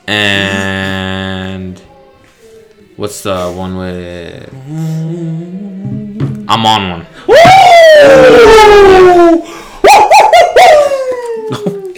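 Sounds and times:
speech: 0:00.1 - 0:00.6, 0:03.0 - 0:04.9, 0:06.5 - 0:09.5
dog howling: 0:07.3 - 0:11.8.

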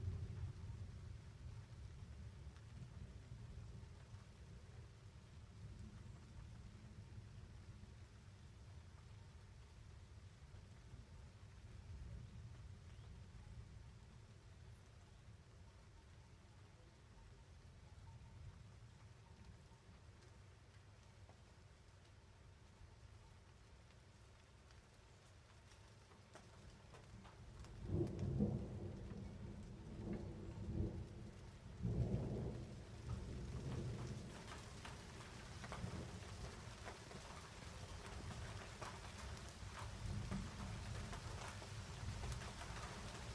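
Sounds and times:
rain in a mountain storm in the French Alps: 0:00.0 - 0:43.3
thunder in the French Alps: 0:27.8 - 0:36.3.

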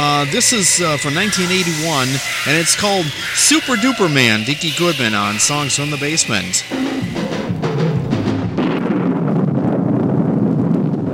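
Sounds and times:
speech: 0:00.2 - 0:07.4
hydrogen bomb exploding in outer space sound effect: 0:06.6 - 0:11.1.

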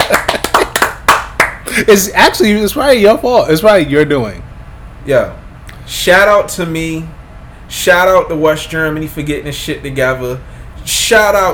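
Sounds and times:
hands clapping in celebration: 0:00.0 - 0:01.8
speech: 0:01.8 - 0:11.5.

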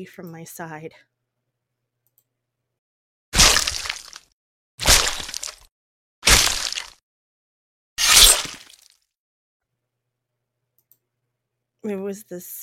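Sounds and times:
speech: 0:00.0 - 0:01.1, 0:11.8 - 0:12.6
bones crunching: 0:03.4 - 0:07.0, 0:08.0 - 0:09.0
flesh tearing: 0:03.4 - 0:07.0, 0:08.0 - 0:09.0.

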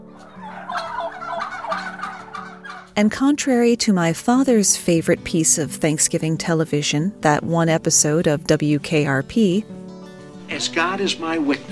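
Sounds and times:
wild turkey gobbling: 0:00.2 - 0:03.0
speech: 0:03.0 - 0:09.8, 0:10.6 - 0:11.7.

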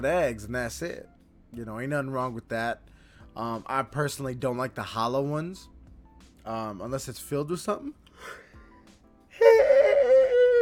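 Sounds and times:
speech: 0:00.0 - 0:05.7, 0:06.4 - 0:08.4
person yawning: 0:09.4 - 0:10.5.

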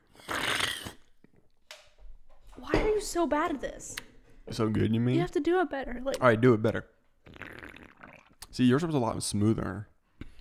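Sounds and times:
aggressive slurping of a drink: 0:00.0 - 0:01.4, 0:07.2 - 0:08.6
speech: 0:03.0 - 0:07.0, 0:08.6 - 0:09.9.

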